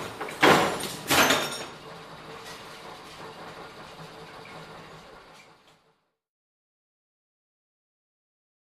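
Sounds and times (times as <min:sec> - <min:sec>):
industrial stamping press machine: 0:00.0 - 0:06.0.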